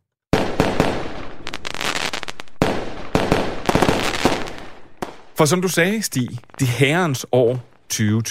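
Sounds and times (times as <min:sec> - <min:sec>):
firework rocket exploding: 0:00.3 - 0:05.4
speech: 0:05.4 - 0:08.2.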